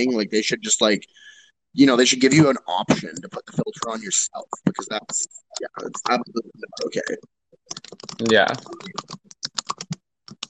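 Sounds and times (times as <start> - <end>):
speech: 0.0 - 9.2
computer keyboard typing: 4.6 - 10.4.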